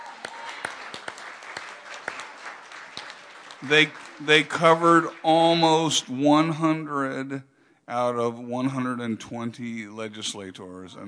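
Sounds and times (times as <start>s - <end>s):
crowd applauding: 0.0s - 6.8s
speech: 3.6s - 11.0s.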